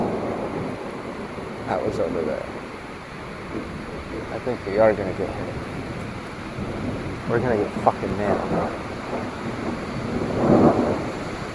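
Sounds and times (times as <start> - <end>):
loud thunderclap: 0.0 - 11.5
storm roar: 0.0 - 11.5
speech: 1.7 - 2.6, 3.5 - 5.7, 6.6 - 10.6.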